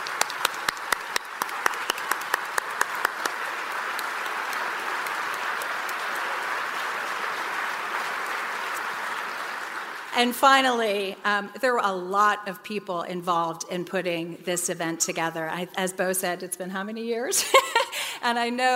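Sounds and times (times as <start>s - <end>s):
round of applause: 0.0s - 11.2s
speech: 10.2s - 18.7s.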